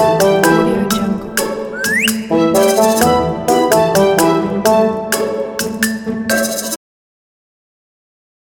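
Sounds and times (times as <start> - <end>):
comedy music: 0.0 - 6.8.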